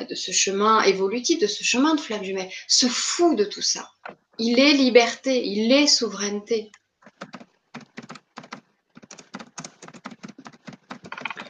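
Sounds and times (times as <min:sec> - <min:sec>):
speech: 0:00.1 - 0:07.4
fast typing on a computer keyboard: 0:07.0 - 0:11.4.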